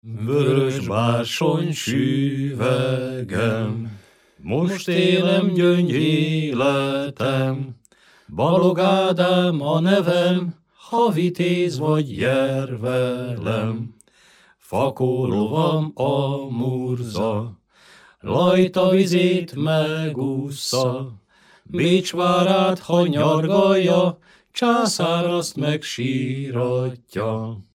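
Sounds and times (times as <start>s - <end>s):
Hungarian folk song: 0.0s - 27.7s.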